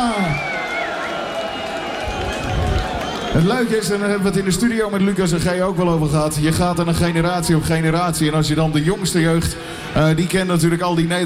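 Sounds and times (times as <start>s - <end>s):
audience applause and cheering: 0.0s - 4.2s
speech: 3.3s - 11.2s.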